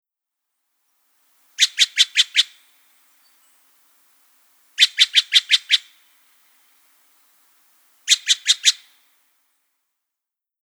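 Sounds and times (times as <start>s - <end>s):
Steller's jay call: 1.6s - 3.6s, 4.8s - 6.1s, 8.0s - 9.0s.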